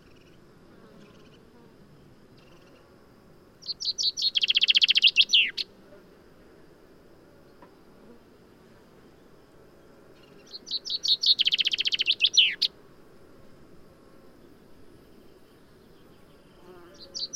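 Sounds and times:
common chaffinch singing: 3.6s - 5.7s, 10.2s - 12.8s, 15.8s - 17.3s.

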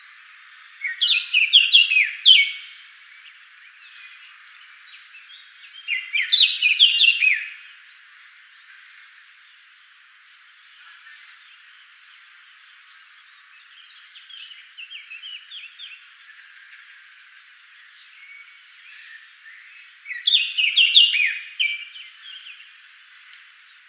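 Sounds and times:
Eurasian blackcap song: 0.8s - 2.8s, 5.8s - 7.6s, 18.1s - 22.6s.

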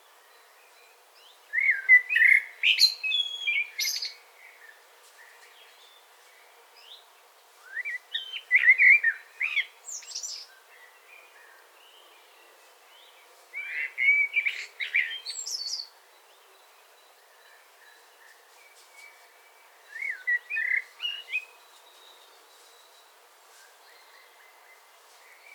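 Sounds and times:
hiss: 0.0s - 25.5s
Common blackbird singing: 0.3s - 4.8s, 7.6s - 23.1s.

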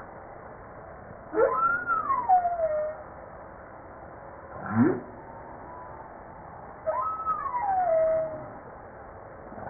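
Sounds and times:
humpback whale song: 1.3s - 3.2s, 4.5s - 8.7s.

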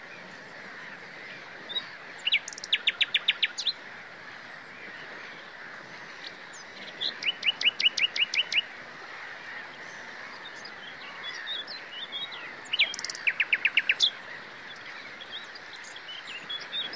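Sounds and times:
common nightingale song: 1.7s - 3.8s, 6.2s - 8.7s, 9.7s - 16.9s.

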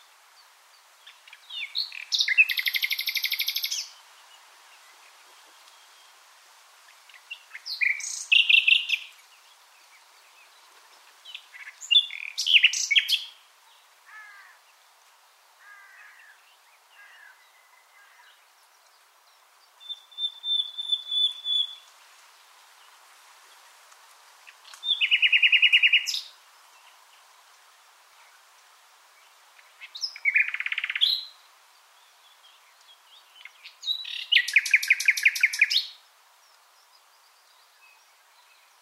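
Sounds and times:
common nightingale singing: 0.8s - 6.2s, 6.9s - 14.6s, 16.0s - 22.0s, 24.4s - 27.1s, 29.6s - 38.8s.

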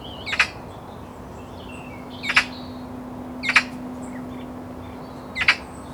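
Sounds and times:
Eurasian magpie Pica pica giving harsh rattling chatter: 0.2s - 0.6s, 2.1s - 2.8s, 3.4s - 4.2s, 5.3s - 5.7s.

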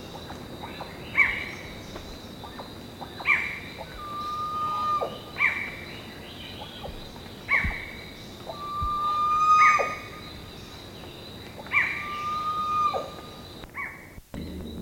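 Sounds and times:
bird harsh downslurred calls: 0.0s - 11.0s, 11.6s - 14.2s
background hum: 0.0s - 14.8s
bird long level whistle: 4.0s - 5.3s, 8.5s - 10.2s, 12.0s - 13.2s.

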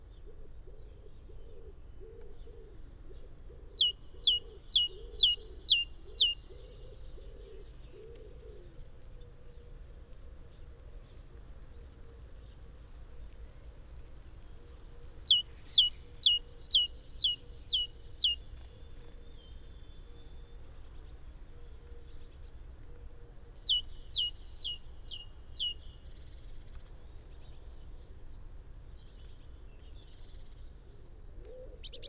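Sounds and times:
great tit calling: 3.5s - 6.6s, 15.0s - 18.4s, 23.4s - 26.3s.

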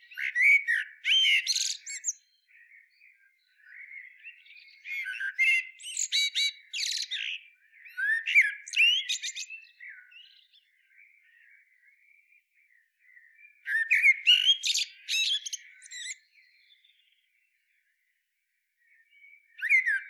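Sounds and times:
common blackbird song, Turdus merula: 0.0s - 20.0s.

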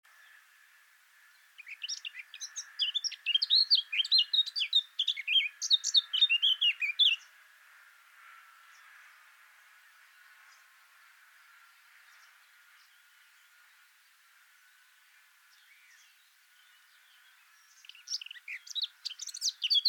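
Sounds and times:
Eurasian blackcap chirps and twittering: 1.3s - 7.4s, 10.0s - 19.8s.

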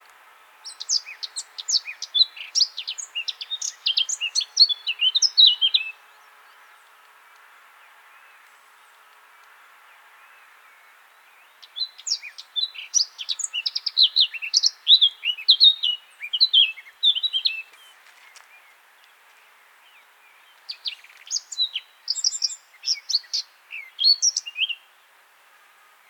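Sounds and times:
Eurasian blackcap singing: 0.6s - 6.0s, 11.5s - 17.9s, 20.7s - 24.9s.

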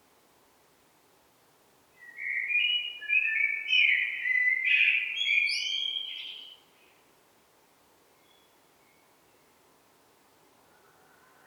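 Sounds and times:
Eurasian blackbird singing: 2.0s - 7.0s, 8.2s - 9.5s.

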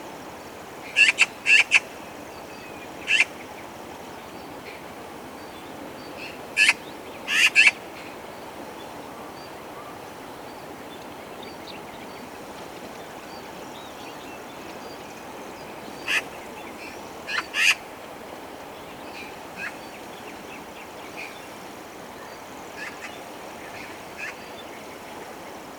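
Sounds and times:
Eurasian magpie harsh calls: 1.0s - 1.8s, 3.1s - 3.3s, 6.6s - 7.8s, 17.3s - 17.8s.

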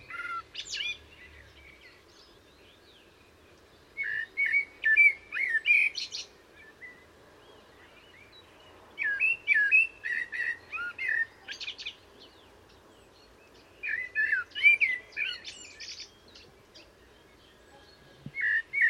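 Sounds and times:
Common blackbird song: 0.0s - 18.8s.

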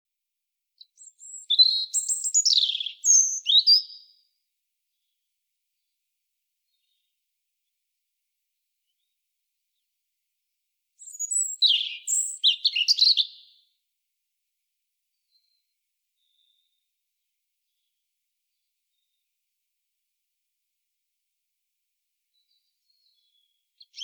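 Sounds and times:
European robin singing: 0.8s - 4.2s, 11.0s - 13.7s, 22.4s - 24.0s.

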